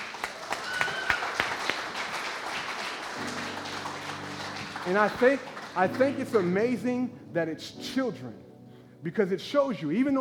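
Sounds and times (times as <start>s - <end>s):
audience clapping: 0.0s - 6.8s
speech: 4.8s - 8.4s, 9.0s - 10.1s.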